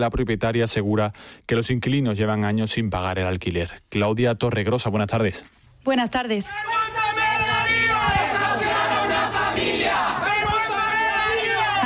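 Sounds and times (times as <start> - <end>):
speech: 0.0 - 7.2
organizations and unions shouting condemnation at an eviction: 6.5 - 11.8.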